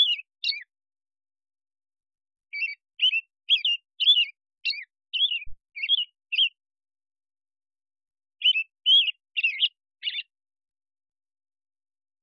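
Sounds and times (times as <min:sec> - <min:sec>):
robin: 0:00.0 - 0:00.7, 0:02.5 - 0:06.6, 0:08.4 - 0:10.3.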